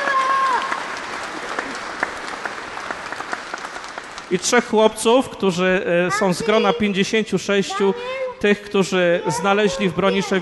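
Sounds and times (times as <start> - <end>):
crowd clapping: 0.0 - 4.9
speech: 4.3 - 10.3.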